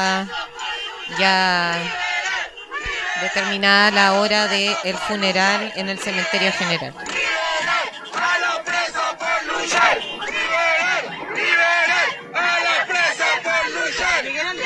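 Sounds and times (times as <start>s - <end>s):
speech: 0.0s - 0.5s, 1.1s - 2.0s, 3.2s - 7.2s
crowd chanting freedom chants: 0.0s - 14.6s.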